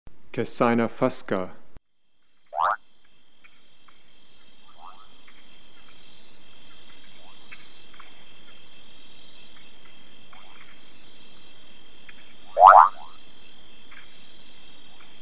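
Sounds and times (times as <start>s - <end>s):
Brown running frog Kassina fusca rising call: 2.5s - 2.8s, 4.6s - 5.2s, 12.4s - 13.3s.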